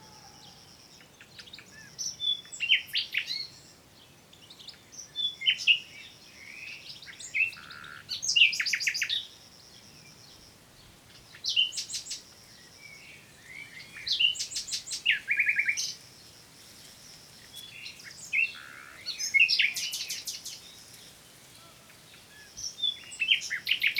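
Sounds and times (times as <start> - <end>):
common nightingale Luscinia megarhynchos song: 0.0 - 23.9.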